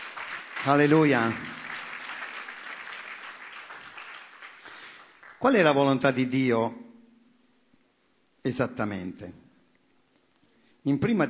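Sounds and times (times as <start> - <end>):
audience applauding: 0.0 - 5.7
speech: 0.6 - 1.6, 5.4 - 6.8, 8.4 - 9.4, 10.8 - 11.2.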